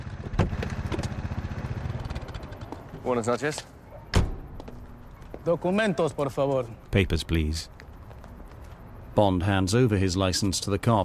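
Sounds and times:
police motorcycle engines idling behind a parked car: 0.0s - 6.6s
speech: 3.0s - 3.7s, 5.4s - 7.8s, 9.2s - 11.0s.

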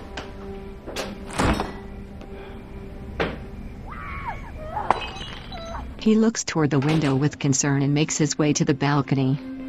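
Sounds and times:
refrigerator door opening: 1.0s - 1.9s
speech: 6.0s - 9.5s.

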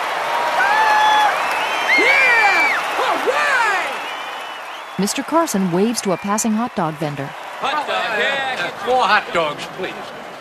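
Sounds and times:
crowd cheering and clapping at a youth baseball game: 0.0s - 10.3s
shrill whistles: 0.6s - 6.3s
speech: 5.0s - 10.2s.

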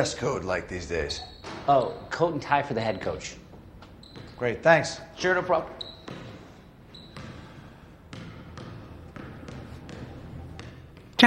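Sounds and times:
speech: 0.0s - 3.4s, 4.4s - 6.2s
basketball bouncing on an outdoor court: 3.8s - 4.4s, 5.7s - 11.2s.

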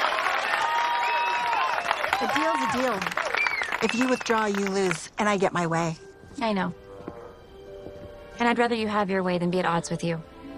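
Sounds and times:
crowd applause: 0.0s - 5.1s
speech: 2.2s - 6.8s, 8.4s - 10.3s.

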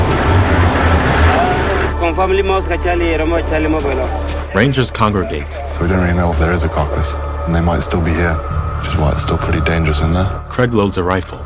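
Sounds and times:
Jeep jolting over a bumpy road at night in grassland: 0.0s - 2.0s
speech: 2.1s - 11.4s.

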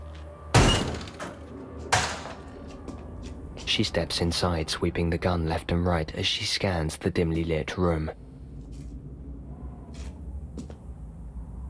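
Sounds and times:
door kicked open: 0.6s - 2.6s
speech: 3.7s - 8.2s.

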